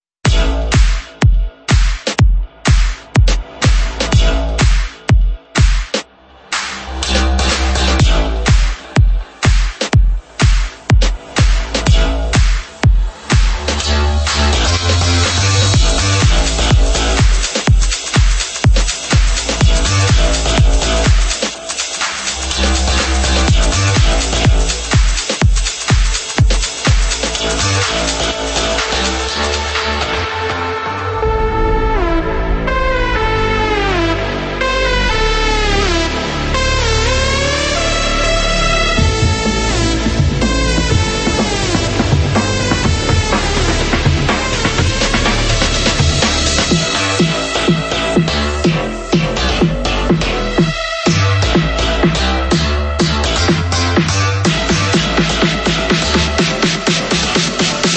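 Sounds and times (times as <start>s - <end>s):
future house music: 0.2s - 57.9s.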